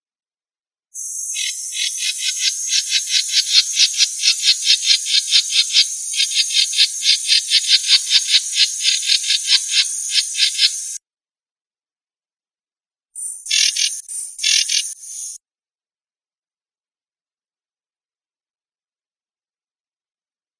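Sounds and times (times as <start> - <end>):
Bornean striped babbler alarm call in Kalimantan: 1.0 - 11.0, 13.3 - 15.4.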